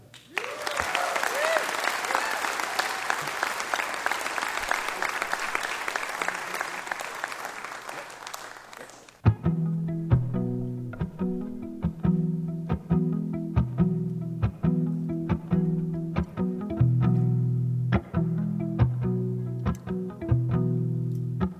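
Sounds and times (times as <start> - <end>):
audience applause welcoming a performer at Mountain Stage in West Virginia: 0.0 - 9.2
music: 9.2 - 21.5.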